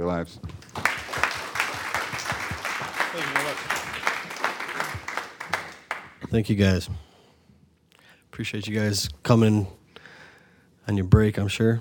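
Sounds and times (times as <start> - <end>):
speech: 0.0 - 0.7, 3.2 - 4.1, 6.3 - 7.1, 8.4 - 9.8, 10.9 - 11.8
audience applause: 0.6 - 6.2.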